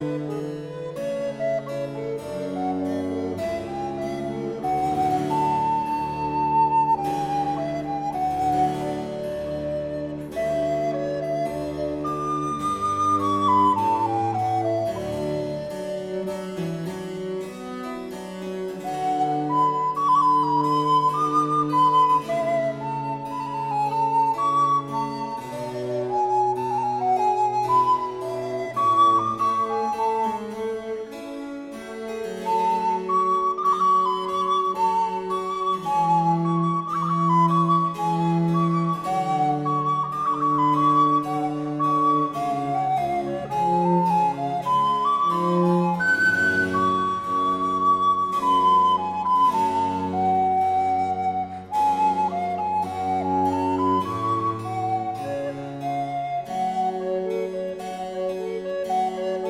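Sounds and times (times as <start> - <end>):
alto recorder: 0.0 - 16.1, 18.8 - 30.8, 32.4 - 59.4
basso continuo: 0.0 - 59.4.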